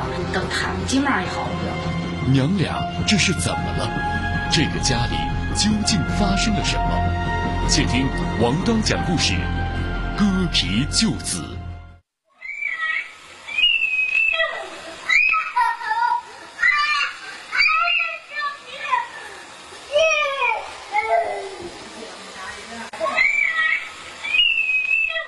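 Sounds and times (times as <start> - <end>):
speech: 0.2 - 9.6, 10.2 - 11.6
child crying miserably: 12.4 - 21.7, 23.0 - 25.2.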